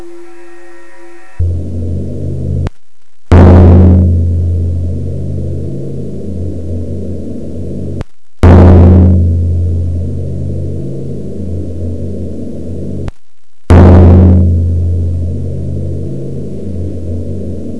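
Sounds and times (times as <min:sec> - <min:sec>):
drum: 0:01.4 - 0:07.0, 0:08.4 - 0:12.0, 0:13.7 - 0:17.7.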